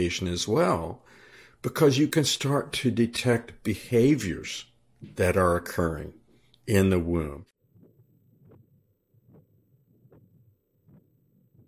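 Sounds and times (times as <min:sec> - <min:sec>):
speech: 0:00.0 - 0:07.5
fetal heartbeat on Doppler ultrasound: 0:07.7 - 0:11.6.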